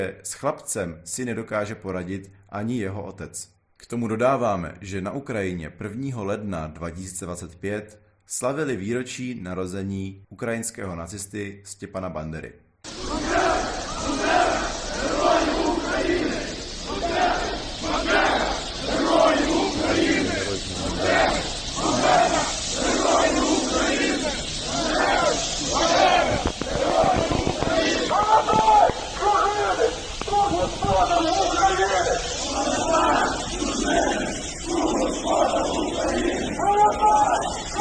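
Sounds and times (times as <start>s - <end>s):
speech: 0.0s - 12.6s
crowd chanting slogans: 12.9s - 37.7s.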